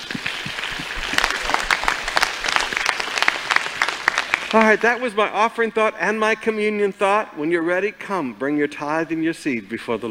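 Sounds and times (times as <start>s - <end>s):
crowd applauding: 0.0s - 5.0s
speech: 4.5s - 10.1s.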